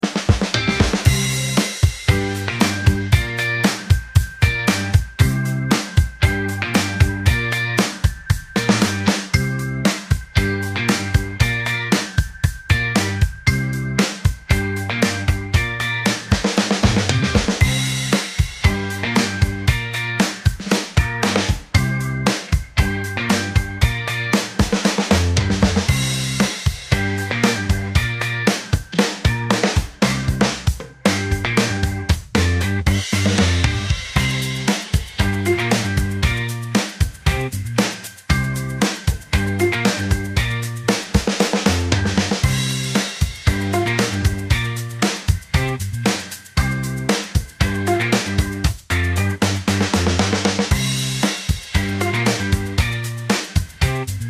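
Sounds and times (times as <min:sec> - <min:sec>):
retro groove wave: 0:00.0 - 0:54.2.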